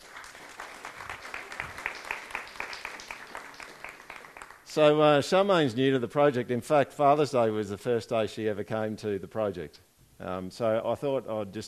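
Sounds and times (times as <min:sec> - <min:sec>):
audience applause: 0:00.0 - 0:04.7
speech: 0:04.7 - 0:11.6.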